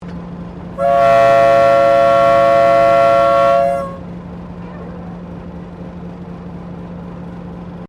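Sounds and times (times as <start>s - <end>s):
long whistle of 1951 Tasmanian TGR X Class diesel train: 0.8s - 4.1s.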